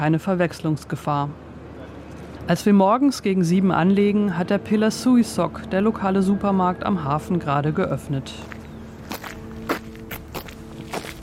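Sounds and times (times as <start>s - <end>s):
speech: 0.0s - 1.5s, 2.5s - 8.6s
footsteps walking up a street on a windy, drizzly morning: 8.4s - 11.2s.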